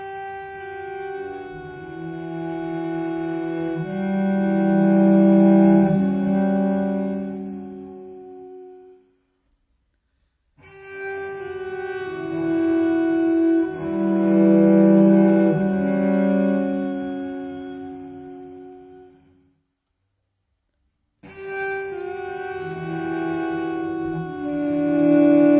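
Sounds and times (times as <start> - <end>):
cello music: 0.7 - 8.6, 10.8 - 19.2, 21.4 - 25.5.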